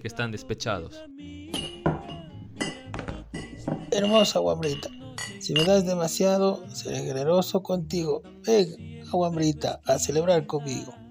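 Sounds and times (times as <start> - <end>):
speech: 0.0 - 2.7, 4.0 - 11.0
glass liquor bottles clinking together: 1.5 - 6.2.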